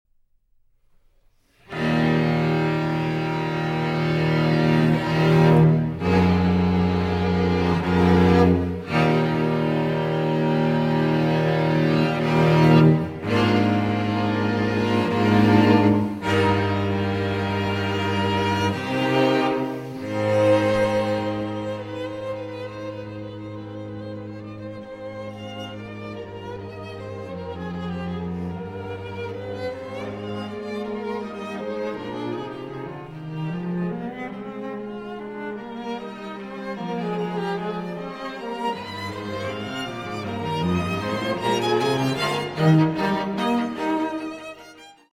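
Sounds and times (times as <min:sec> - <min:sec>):
string quartet in E-flat major: 0:01.3 - 0:45.1.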